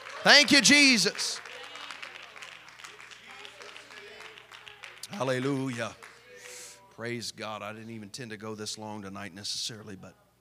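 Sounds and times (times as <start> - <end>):
audience clapping: 0.0 - 6.8
speech: 0.2 - 1.4, 5.1 - 6.0, 7.0 - 10.2.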